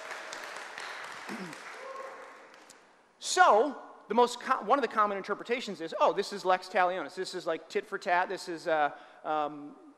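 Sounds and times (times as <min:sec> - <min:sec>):
round of applause: 0:00.0 - 0:02.9
speech: 0:03.4 - 0:09.8.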